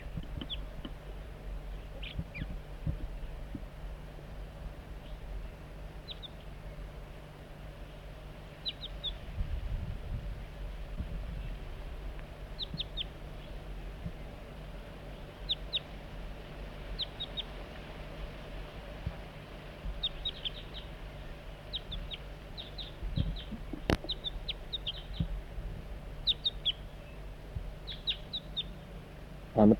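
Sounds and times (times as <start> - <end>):
juvenile crossbill chip calls: 0.0 - 1.0, 1.8 - 2.6, 5.0 - 6.8, 8.5 - 9.2, 12.5 - 14.5, 15.2 - 16.0, 16.9 - 17.6, 19.9 - 25.4, 26.2 - 29.0
low hum: 0.0 - 29.7.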